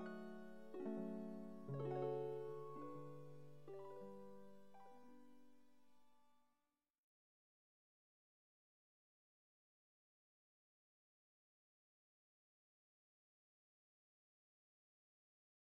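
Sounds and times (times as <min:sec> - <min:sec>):
chord progression: 0:00.0 - 0:05.3.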